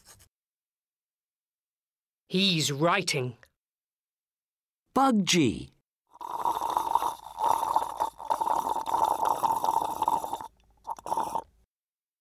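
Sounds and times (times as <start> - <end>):
speech: 2.3 - 3.5, 5.0 - 5.7
gurgling gulps of liquid: 6.1 - 11.6.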